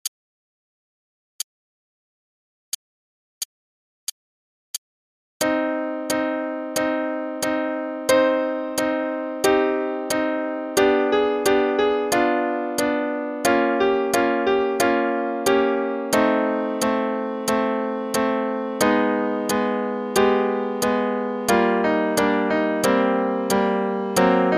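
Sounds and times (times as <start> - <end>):
play-along music: 5.4 - 24.5.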